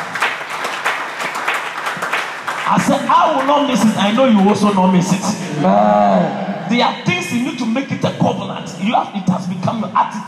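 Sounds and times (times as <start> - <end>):
crowd clapping: 0.0 - 5.2
speech: 2.7 - 10.2.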